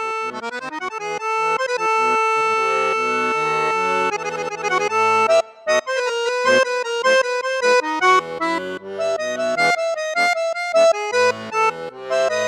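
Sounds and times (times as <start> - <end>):
accordion with bassoon and flute registers: 0.0 - 12.4.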